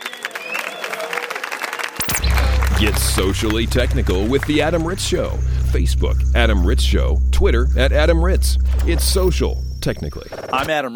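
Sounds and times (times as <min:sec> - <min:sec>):
audience applause: 0:00.0 - 0:02.0
speech: 0:02.8 - 0:10.9.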